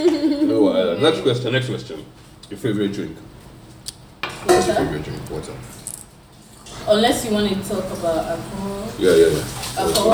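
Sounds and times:
speech: 0:01.0 - 0:03.4, 0:04.4 - 0:05.8, 0:06.8 - 0:10.1
washing dishes: 0:09.0 - 0:10.1.

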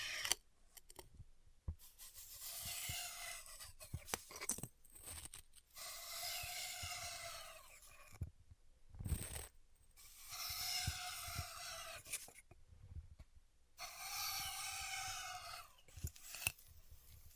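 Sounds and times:
styrofoam being heat-cut: 0:00.0 - 0:00.4, 0:01.9 - 0:04.2, 0:05.1 - 0:08.2, 0:09.2 - 0:12.4, 0:13.8 - 0:16.6.

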